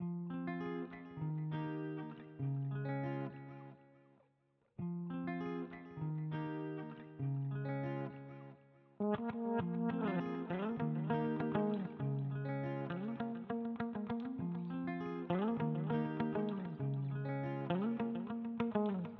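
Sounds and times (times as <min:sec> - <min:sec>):
alternative guitar loop: 0:00.0 - 0:03.8, 0:04.8 - 0:19.1.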